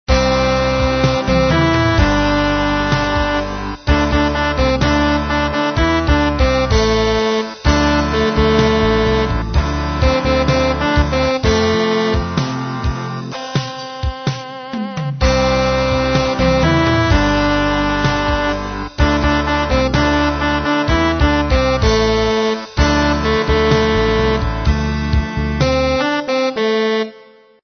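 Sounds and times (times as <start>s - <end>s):
MIDI music: 0.0s - 27.6s.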